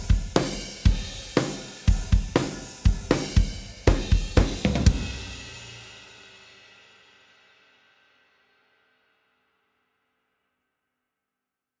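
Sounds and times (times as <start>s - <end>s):
drums: 0.0s - 8.7s.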